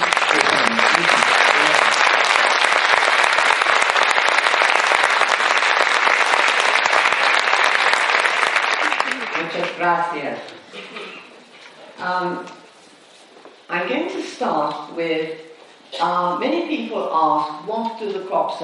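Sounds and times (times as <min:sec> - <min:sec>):
audience applause: 0:00.0 - 0:09.8
speech: 0:09.9 - 0:10.7, 0:12.1 - 0:12.6, 0:13.8 - 0:18.6.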